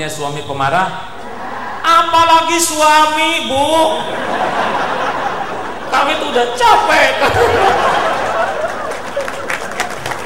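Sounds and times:
speech: 0:00.0 - 0:01.1, 0:01.8 - 0:04.9, 0:06.0 - 0:08.1
laughter: 0:01.2 - 0:02.1, 0:03.6 - 0:10.2
audience applauding: 0:07.3 - 0:10.2.

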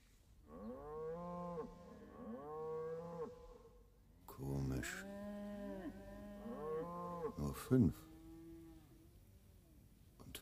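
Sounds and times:
cows mooing: 0:00.5 - 0:03.7, 0:04.9 - 0:08.8
speech: 0:04.4 - 0:05.1, 0:07.4 - 0:08.1.

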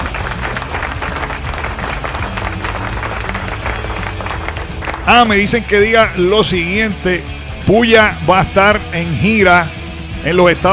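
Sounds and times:
crowd applause: 0:00.0 - 0:05.6
speech: 0:05.1 - 0:10.7.

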